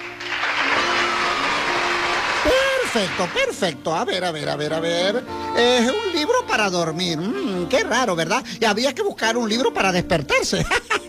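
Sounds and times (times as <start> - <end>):
audience applause: 0.0 - 3.6
speech: 2.4 - 11.0
laughter: 10.4 - 11.0.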